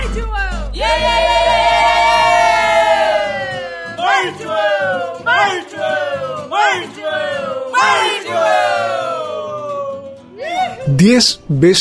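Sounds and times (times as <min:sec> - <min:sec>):
Mapuche community war cry shouted by crowd: 0:00.8 - 0:10.0
speech: 0:11.0 - 0:11.7.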